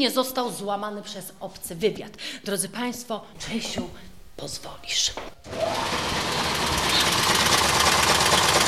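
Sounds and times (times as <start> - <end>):
speech: 0.0 - 7.3
cipher machine designed by Poznań mathematicians running: 5.5 - 8.6.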